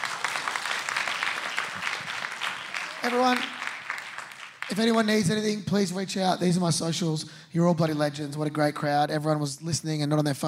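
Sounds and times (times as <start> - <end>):
audience applause: 0.0 - 5.2
speech: 3.0 - 3.6, 4.7 - 10.4.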